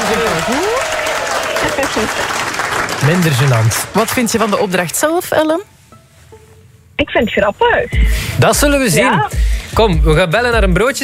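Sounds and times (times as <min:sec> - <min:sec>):
audience applause: 0:00.0 - 0:05.0
speech: 0:01.9 - 0:02.4, 0:03.0 - 0:05.7, 0:07.0 - 0:11.0.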